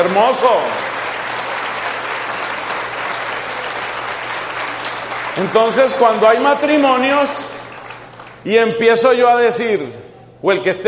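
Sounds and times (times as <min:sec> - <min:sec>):
speech: 0:00.0 - 0:00.9, 0:05.4 - 0:07.5, 0:08.4 - 0:10.8
crowd applauding married couples: 0:00.0 - 0:08.5.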